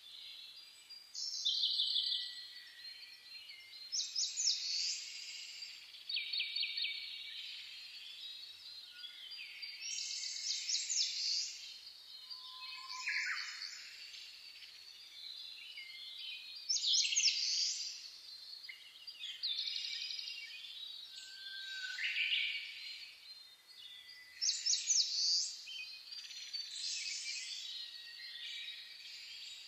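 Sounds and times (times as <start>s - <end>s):
birds singing in a dawn chorus: 0.1s - 29.6s.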